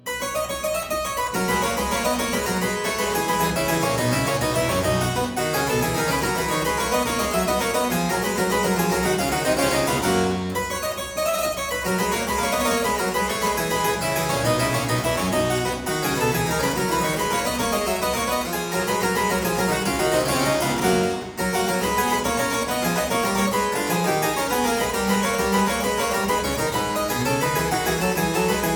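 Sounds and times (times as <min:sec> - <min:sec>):
harpsichord aria variation in C major: 0:00.0 - 0:28.7.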